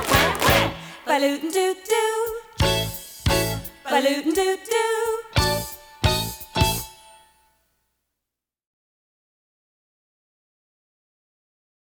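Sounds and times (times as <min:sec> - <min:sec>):
hand clap: 0:00.0 - 0:00.8
shaker: 0:00.0 - 0:07.0.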